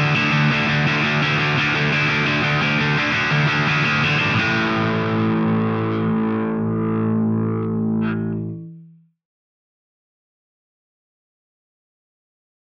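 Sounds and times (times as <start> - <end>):
bass: 0.0 - 9.1.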